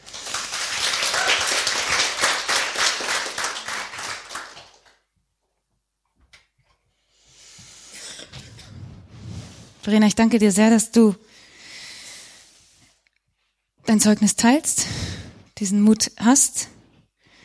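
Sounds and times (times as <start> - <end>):
audience applause: 0.0 - 5.0
speech: 9.9 - 11.3, 14.0 - 16.8.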